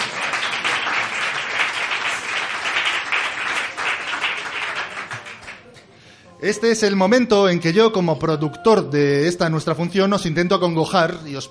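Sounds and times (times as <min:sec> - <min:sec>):
audience applause: 0:00.0 - 0:05.6
speech: 0:06.4 - 0:11.5.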